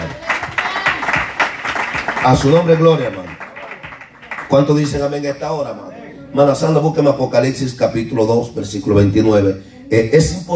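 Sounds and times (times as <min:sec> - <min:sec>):
audience applauding: 0:00.0 - 0:05.2
speech: 0:02.2 - 0:03.3, 0:04.5 - 0:10.5.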